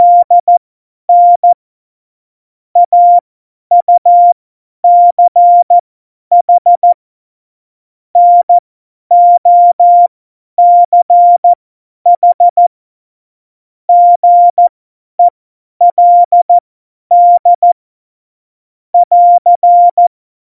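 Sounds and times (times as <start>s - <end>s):
CW Morse code beeps: 0.0s - 1.6s, 2.8s - 7.0s, 8.2s - 11.5s, 12.2s - 12.7s, 13.9s - 17.8s, 19.0s - 20.1s.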